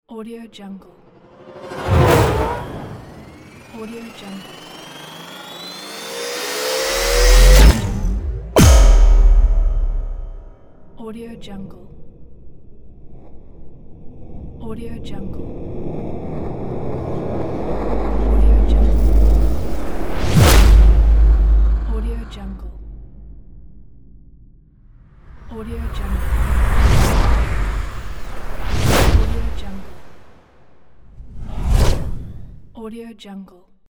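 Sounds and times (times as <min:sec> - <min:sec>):
cinematic trailer sounds: 0:01.0 - 0:10.6, 0:16.2 - 0:24.6, 0:25.3 - 0:30.4.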